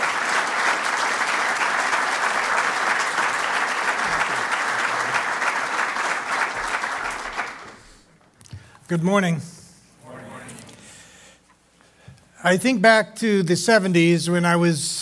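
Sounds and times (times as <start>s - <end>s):
audience applause welcoming a speaker at a morning gathering: 0.0s - 8.0s
speech: 8.9s - 9.6s, 12.4s - 14.9s.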